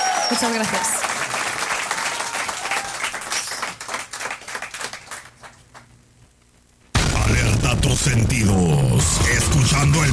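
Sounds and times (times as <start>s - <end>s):
audience applause: 0.0s - 5.9s
speech: 0.3s - 1.1s, 8.0s - 10.1s.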